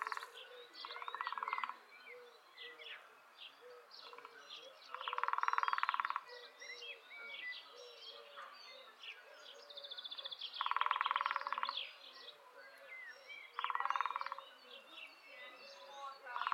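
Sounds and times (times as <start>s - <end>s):
lesser spotted woodpecker drumming: 0.0s - 1.8s, 4.9s - 6.3s, 10.6s - 11.8s, 13.6s - 14.4s, 16.3s - 16.5s
songbirds twittering: 0.0s - 16.5s.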